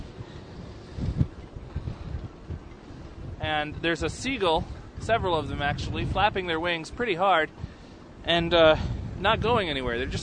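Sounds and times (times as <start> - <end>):
wind whistling through boat rigging: 0.0 - 10.2
speech: 3.5 - 7.6, 8.2 - 10.2.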